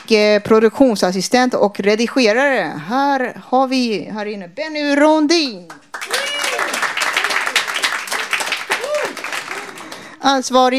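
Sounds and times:
speech: 0.1s - 6.2s, 10.2s - 10.7s
applause: 5.7s - 10.2s.

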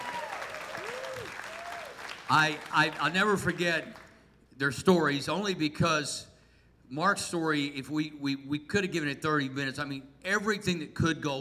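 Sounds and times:
audience applause: 0.0s - 4.1s
speech: 2.3s - 4.0s, 4.6s - 6.3s, 6.9s - 11.3s.

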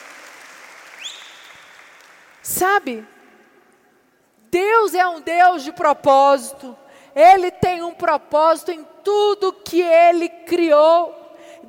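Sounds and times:
audience applause: 0.0s - 2.4s
speech: 2.5s - 3.2s, 4.5s - 11.6s.

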